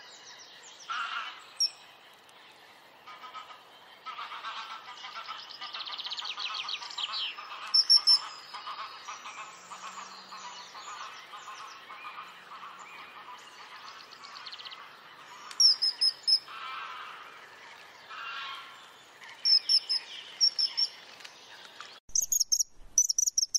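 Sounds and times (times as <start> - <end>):
birds chattering and trilling in a busy chorus: 0.0 - 23.5.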